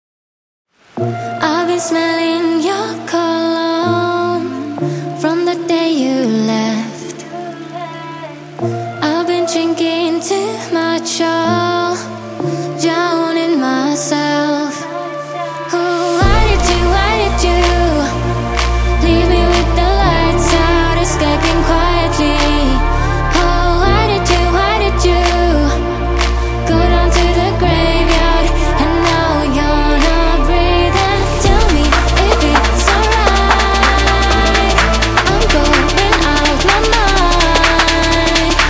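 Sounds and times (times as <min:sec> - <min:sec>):
construction kit full music mix: 0:00.9 - 0:38.6.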